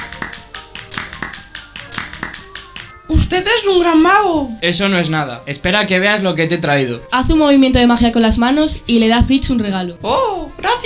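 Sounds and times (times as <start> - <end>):
hands clapping: 0.0 - 3.0
speech: 3.1 - 10.8.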